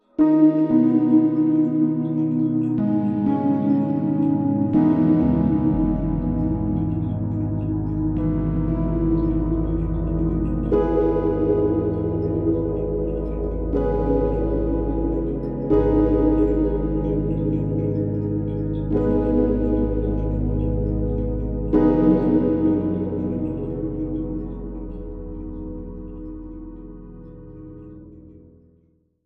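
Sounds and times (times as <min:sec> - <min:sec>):
piano piece: 0:00.0 - 0:28.9.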